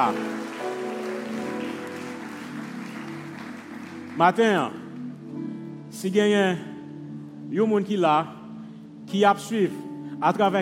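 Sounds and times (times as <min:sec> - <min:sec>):
speech: 0:00.0 - 0:00.4, 0:04.2 - 0:04.8, 0:05.9 - 0:06.7, 0:07.5 - 0:08.4, 0:09.1 - 0:10.6
audience applause: 0:00.0 - 0:05.0.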